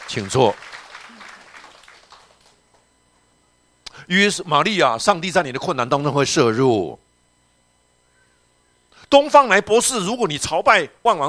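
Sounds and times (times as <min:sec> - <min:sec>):
audience applause: 0:00.0 - 0:02.7
speech: 0:00.1 - 0:00.8, 0:04.1 - 0:07.0, 0:09.1 - 0:11.2.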